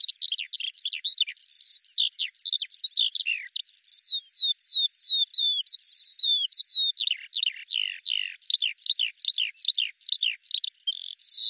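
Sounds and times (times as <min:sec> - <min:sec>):
Eurasian skylark song: 0:00.0 - 0:11.4.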